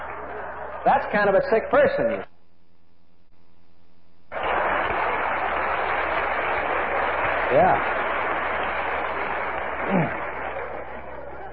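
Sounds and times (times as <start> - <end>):
audience applause: 0.0 - 1.5, 4.3 - 11.5
speech: 0.8 - 2.3, 7.5 - 8.0.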